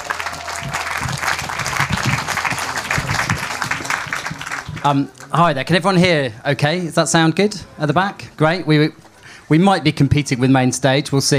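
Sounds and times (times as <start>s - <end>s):
audience applause: 0.0s - 5.4s
speech: 4.8s - 11.3s.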